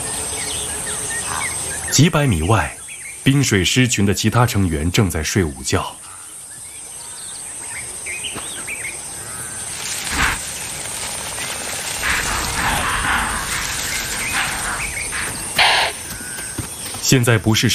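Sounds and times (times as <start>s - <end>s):
birds chirping: 0.0s - 3.6s, 5.5s - 17.7s
insect hiss: 0.0s - 4.3s, 5.6s - 17.1s
speech: 1.9s - 6.1s, 17.1s - 17.7s
impala alarm calls: 9.3s - 10.4s, 11.7s - 16.6s.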